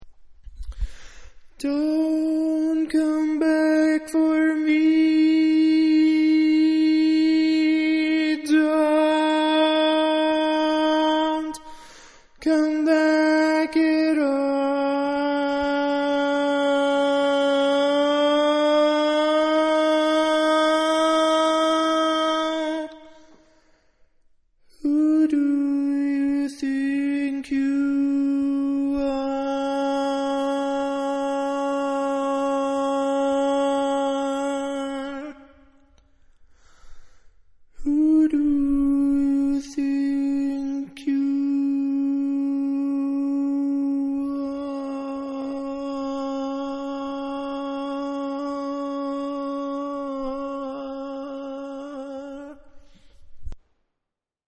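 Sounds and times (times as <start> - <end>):
barbershop tags lead voice: 1.6 - 11.8, 12.4 - 23.1, 24.8 - 35.5, 37.8 - 52.7.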